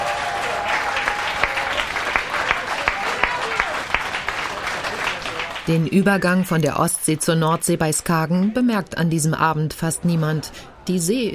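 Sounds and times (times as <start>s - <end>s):
audience applauding: 0.0s - 6.5s
speech: 5.7s - 11.3s.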